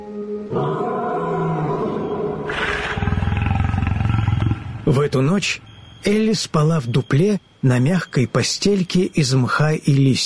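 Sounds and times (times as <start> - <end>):
lion roaring: 0.5 - 5.3
speech: 4.9 - 10.2.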